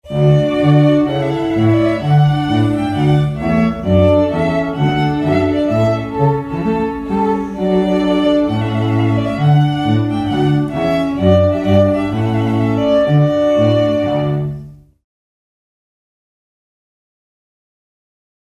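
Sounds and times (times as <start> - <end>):
hornpipe tune: 0.0 - 14.8.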